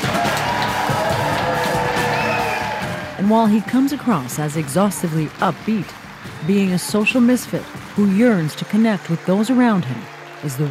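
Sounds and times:
audience applause and cheering: 0.0 - 10.6
speech: 3.3 - 10.6.

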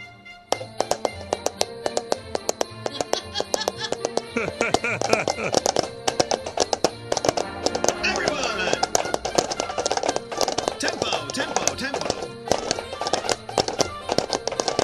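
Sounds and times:
paper cups clopping like horse hooves: 0.6 - 14.8
laughter: 2.9 - 6.3, 8.0 - 9.3, 10.7 - 12.3
speech: 4.4 - 5.8.

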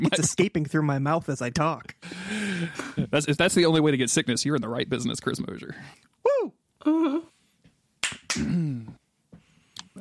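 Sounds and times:
speech: 0.0 - 6.2
hand clapping: 8.0 - 8.5.

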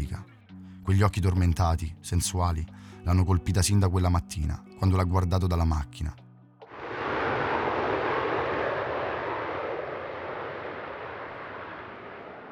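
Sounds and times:
speech: 0.8 - 6.2
Boeing airliner engine roar in flight: 6.6 - 12.5
short low hum: 6.6 - 12.5.

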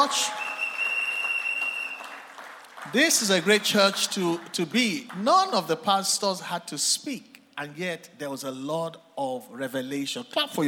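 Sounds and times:
speech: 0.0 - 0.4, 2.9 - 10.6
round of applause: 0.0 - 5.8.

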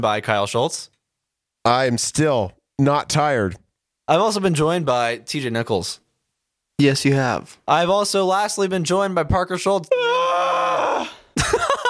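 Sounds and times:
speech: 0.0 - 1.0, 1.6 - 6.0, 6.8 - 10.2
loud scream-like yawn: 10.0 - 11.3.

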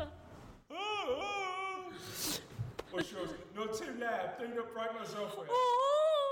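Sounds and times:
person screaming: 0.7 - 2.2
speech: 2.9 - 6.0.

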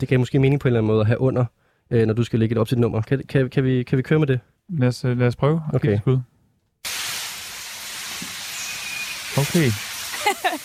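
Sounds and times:
speech: 0.0 - 6.3, 9.4 - 10.4
shower spraying water over bathing wood pigeons: 6.8 - 10.6
laughter: 10.1 - 10.6.

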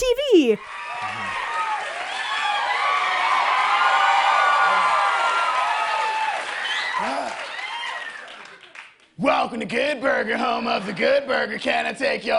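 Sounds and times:
speech: 0.0 - 0.8, 9.4 - 12.3
TV studio audience whooping and screaming: 0.8 - 8.2
TV studio audience applauding: 1.5 - 9.2.

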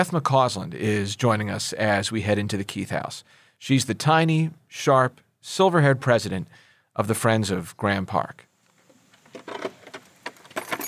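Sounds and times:
speech: 0.0 - 8.5
large brass skeleton key rattling in an old lock: 10.3 - 10.8.

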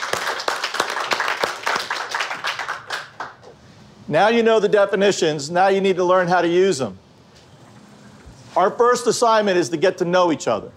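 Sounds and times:
group applauding themselves: 0.0 - 3.6
speech: 4.1 - 7.0, 8.6 - 10.7.

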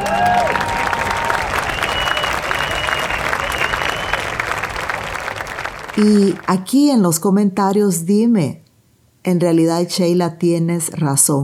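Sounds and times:
faint whistles and cheers: 0.0 - 5.5
steady applause from a group: 0.0 - 6.7
speech: 6.0 - 8.6, 9.2 - 11.4.

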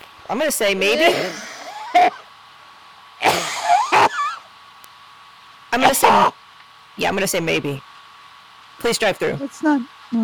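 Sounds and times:
speech: 0.3 - 1.5, 5.8 - 6.4, 7.0 - 7.9, 8.8 - 10.2
harsh raspy cough: 1.0 - 2.2, 3.2 - 4.4.

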